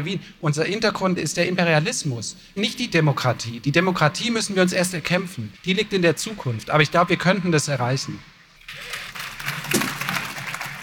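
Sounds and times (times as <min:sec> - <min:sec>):
speech: 0:00.0 - 0:09.0
audience applause: 0:08.7 - 0:10.8.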